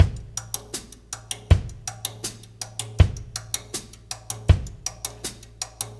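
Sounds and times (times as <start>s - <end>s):
laidback loop: 0.0s - 5.9s.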